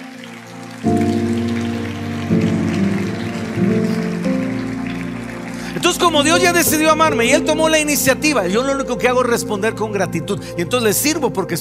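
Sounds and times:
audience applause: 0:00.0 - 0:08.4
sustained keyboard chords: 0:00.0 - 0:11.5
speech: 0:05.8 - 0:11.5.

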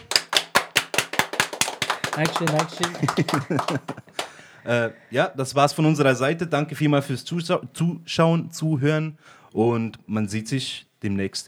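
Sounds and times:
brief applause: 0:00.0 - 0:04.4
laughter: 0:00.0 - 0:04.9
speech: 0:02.2 - 0:11.4.

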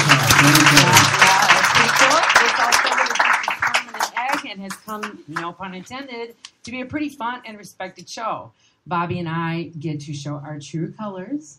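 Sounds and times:
crowd applause sound effect: 0:00.0 - 0:05.4
speech: 0:04.9 - 0:11.5.

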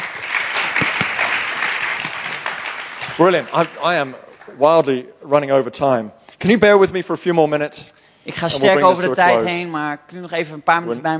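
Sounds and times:
audience applause: 0:00.0 - 0:05.0
speech: 0:03.2 - 0:11.1.

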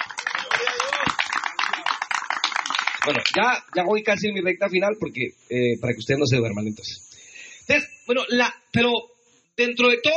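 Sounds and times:
congregation applause during a Spanish-language church service: 0:00.0 - 0:04.0
speech: 0:03.0 - 0:07.1, 0:07.7 - 0:10.1.

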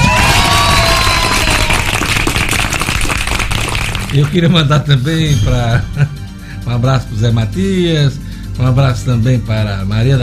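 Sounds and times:
round of applause: 0:00.0 - 0:04.6
speech: 0:04.2 - 0:10.2.

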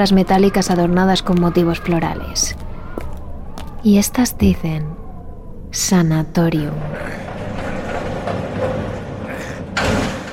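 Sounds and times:
speech: 0:00.0 - 0:02.6, 0:03.8 - 0:05.0, 0:05.7 - 0:07.4
heavy main door pushed open: 0:06.8 - 0:10.3.

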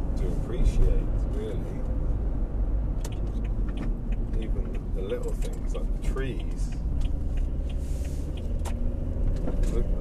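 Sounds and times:
car driving along a road: 0:00.0 - 0:09.9
speech: 0:00.2 - 0:02.1, 0:04.4 - 0:07.5, 0:09.6 - 0:09.9
faint soft ticks: 0:03.0 - 0:08.9.

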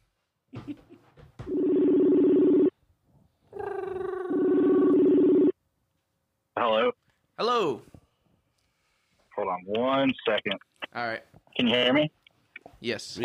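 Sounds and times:
long steady electronic ring tones of an outgoing phone call: 0:01.5 - 0:02.7, 0:04.3 - 0:05.5
speech: 0:06.6 - 0:07.9, 0:09.6 - 0:12.2, 0:12.8 - 0:13.2.

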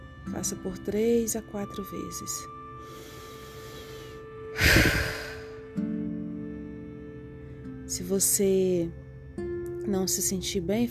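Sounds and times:
speech: 0:00.3 - 0:03.1, 0:08.0 - 0:10.8
sharp breathy exhale through the mouth during a breathing exercise: 0:02.8 - 0:05.7.

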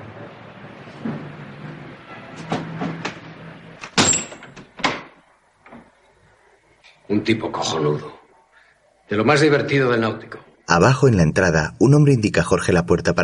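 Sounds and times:
window being closed: 0:00.2 - 0:05.9
speech: 0:07.2 - 0:08.2, 0:09.1 - 0:13.2.

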